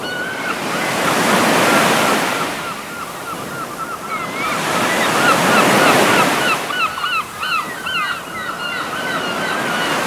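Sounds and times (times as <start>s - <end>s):
gulls mewing: 0.0s - 10.0s.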